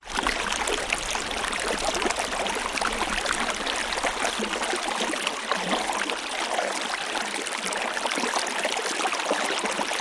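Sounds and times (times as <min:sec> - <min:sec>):
water flowing in the River Shannon: 0:00.0 - 0:09.9.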